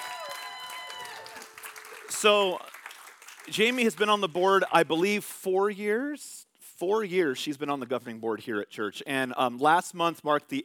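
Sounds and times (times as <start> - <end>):
audience applause filling a large room: 0.0 - 4.4
speech: 2.2 - 2.7, 3.5 - 10.6.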